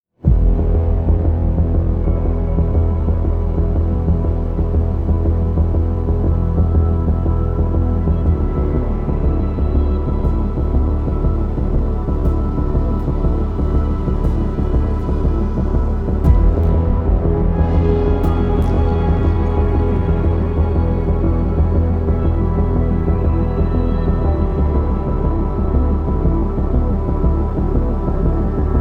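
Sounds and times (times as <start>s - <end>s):
tension bass effect pad: 0.2s - 28.7s.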